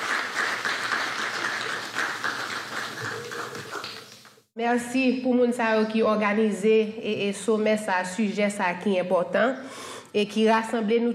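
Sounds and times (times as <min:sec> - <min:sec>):
crowd applauding: 0:00.0 - 0:04.4
speech: 0:04.6 - 0:11.1.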